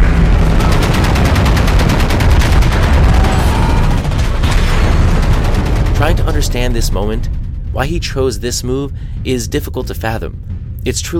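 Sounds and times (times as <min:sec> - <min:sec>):
ship's guns firing in a naval battle: 0:00.0 - 0:07.6
speech: 0:06.4 - 0:11.1.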